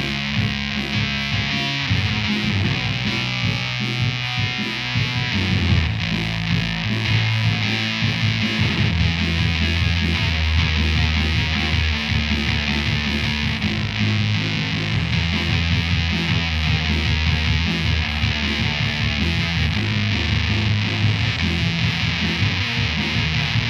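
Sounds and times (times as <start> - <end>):
bass guitar through amp recorded with M160 microphone: 0.0 - 23.6.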